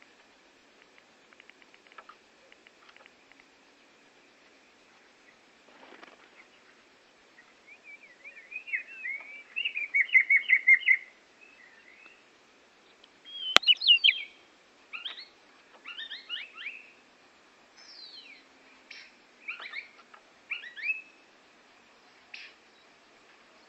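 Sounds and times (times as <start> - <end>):
Oriental magpie-robin singing trilled phrases: 7.4 - 12.2, 13.2 - 17.0, 17.8 - 21.2.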